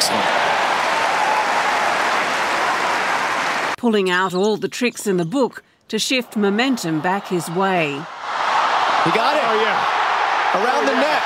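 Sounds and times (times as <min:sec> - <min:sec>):
tennis crowd roaring and applauding: 0:00.0 - 0:03.8, 0:06.2 - 0:11.2
speech: 0:03.8 - 0:08.2, 0:09.0 - 0:11.2.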